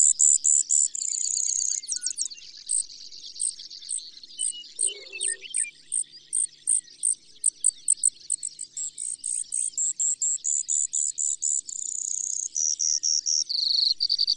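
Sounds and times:
Brewer's sparrow song: 0.0 - 11.2.

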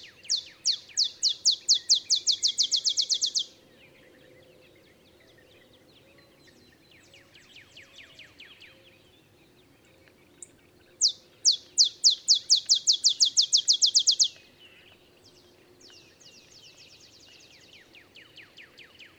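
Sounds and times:
olive sparrow song: 0.0 - 19.1.

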